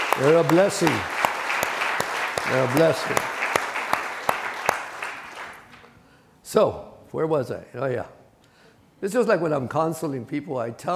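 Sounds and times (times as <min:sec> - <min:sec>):
audience clapping for veterans: 0:00.0 - 0:05.8
speech: 0:00.2 - 0:01.2, 0:02.5 - 0:03.4, 0:06.5 - 0:08.2, 0:09.0 - 0:10.9.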